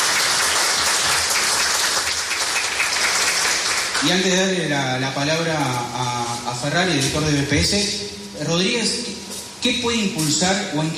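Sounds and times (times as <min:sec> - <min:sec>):
applause: 0:00.0 - 0:04.5
speech: 0:04.0 - 0:10.9.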